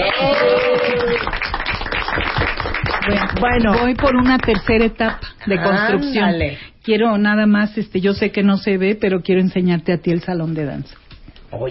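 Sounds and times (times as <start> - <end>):
applause from a group: 0.0 - 5.1
speech: 3.4 - 11.6.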